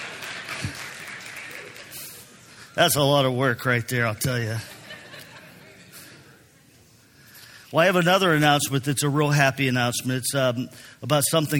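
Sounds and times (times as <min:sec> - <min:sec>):
audience clapping: 0:00.0 - 0:02.4
speech: 0:02.8 - 0:04.7, 0:07.7 - 0:11.5
laughter: 0:04.5 - 0:06.4.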